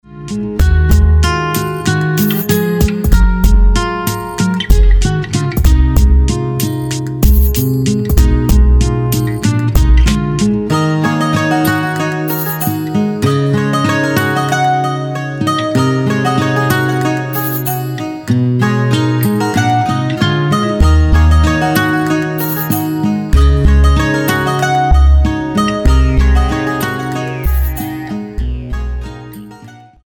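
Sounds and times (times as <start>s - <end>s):
banjos playing: 0.1s - 29.9s.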